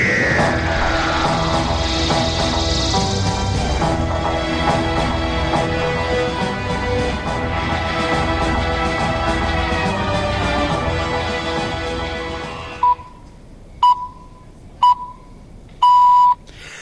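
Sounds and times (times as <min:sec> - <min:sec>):
dense loud wash of music-like sound: 0:00.0 - 0:12.8
electronic beeps: 0:12.8 - 0:13.2, 0:13.8 - 0:16.4.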